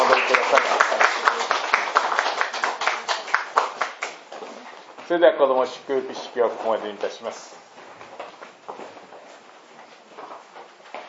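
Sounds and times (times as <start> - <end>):
audience applause: 0.0 - 4.3
speech: 5.1 - 7.6.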